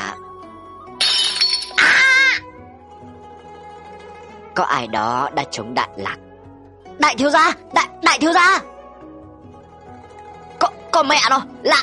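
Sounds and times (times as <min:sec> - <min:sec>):
porcelain teapot shattering on a hard floor: 0:01.0 - 0:02.1
speech: 0:04.6 - 0:06.3, 0:07.0 - 0:08.7, 0:11.0 - 0:11.8.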